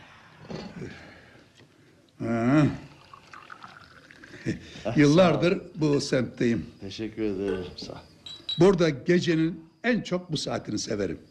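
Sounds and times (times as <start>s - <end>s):
tea being poured into glasses: 2.5s - 6.1s
speech: 4.5s - 11.3s.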